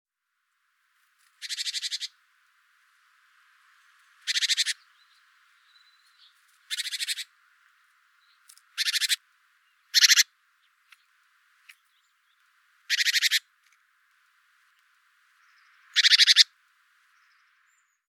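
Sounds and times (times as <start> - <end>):
great tit rattling calls: 1.4 - 2.2, 4.2 - 7.3, 8.7 - 10.3, 11.7 - 13.4, 15.4 - 16.5.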